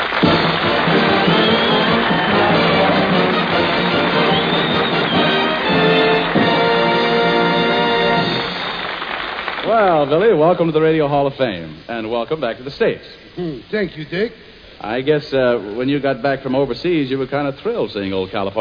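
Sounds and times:
tonal music: 0.0s - 9.0s
audience applause: 0.0s - 10.6s
speech: 9.8s - 18.5s.

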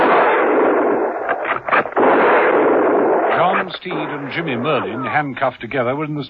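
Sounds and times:
volley of gunshots from a firing party: 0.0s - 4.9s
speech: 3.8s - 6.2s.

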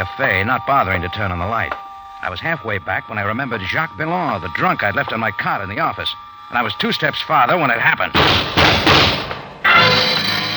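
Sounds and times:
speech: 0.0s - 8.6s
gunshots behind an office door: 8.2s - 10.5s.

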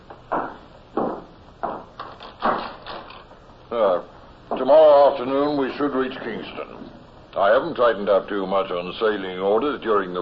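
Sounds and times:
wooden door being pushed shut: 2.4s - 3.2s
speech: 3.7s - 10.2s.

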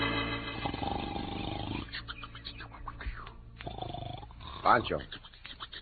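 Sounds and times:
loud snoring: 0.6s - 1.9s, 3.6s - 5.0s
speech: 4.8s - 5.3s.

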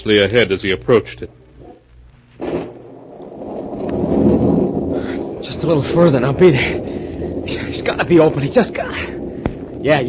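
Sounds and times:
speech: 0.0s - 1.4s, 5.4s - 9.2s, 9.8s - 10.0s
heavy rain storm: 2.3s - 10.0s.

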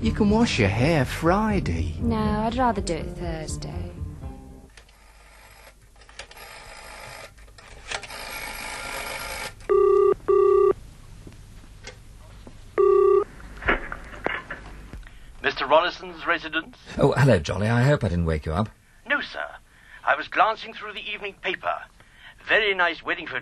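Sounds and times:
speech: 0.0s - 4.0s, 15.7s - 19.5s, 20.1s - 23.3s
public telephone dialing, clicking and whirring: 4.9s - 7.3s, 8.0s - 10.7s, 12.8s - 13.2s
public telephone ringing tone: 6.4s - 7.3s, 8.1s - 10.8s, 12.8s - 13.3s.

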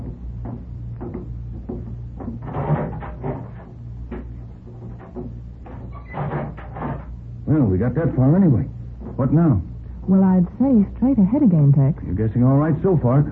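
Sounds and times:
door being opened: 0.0s - 7.2s
speech: 7.5s - 13.2s.

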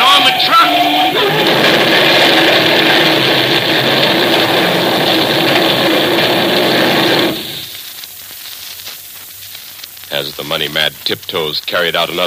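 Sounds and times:
runaway truck engine roaring: 0.0s - 7.8s
speech: 10.6s - 12.2s.

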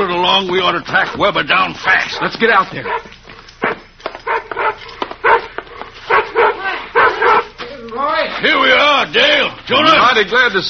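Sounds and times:
speech: 0.3s - 3.1s, 8.4s - 10.6s
Bullet the dog barking and yipping: 2.8s - 7.6s.

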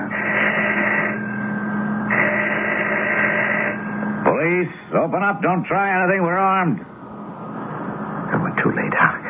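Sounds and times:
doorbell ringing: 0.0s - 4.4s
speech: 4.6s - 6.9s, 8.6s - 9.2s.

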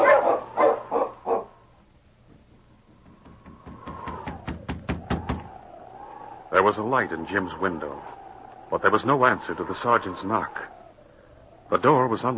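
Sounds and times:
husky sled dogs barking: 0.0s - 1.6s
steady whining tone: 1.2s - 12.3s
speech: 6.6s - 10.7s, 11.7s - 12.3s.

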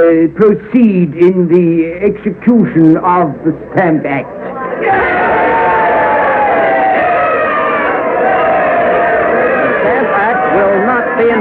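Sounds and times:
speech: 0.0s - 5.7s
large crowd cheering wildly: 4.6s - 11.4s.

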